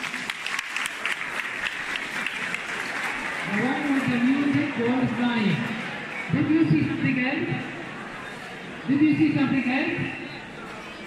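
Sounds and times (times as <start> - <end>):
audience clapping for a student: 0.0 - 5.6
speech: 4.8 - 5.7, 6.3 - 7.7, 8.9 - 10.2.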